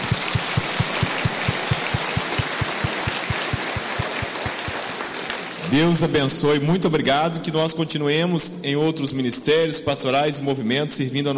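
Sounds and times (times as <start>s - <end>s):
audience applause: 0.0s - 6.0s
speech: 5.7s - 11.3s.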